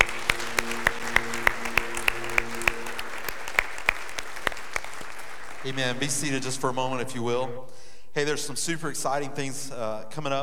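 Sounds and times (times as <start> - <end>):
audience clapping: 0.0 - 7.4
speech: 5.7 - 10.4.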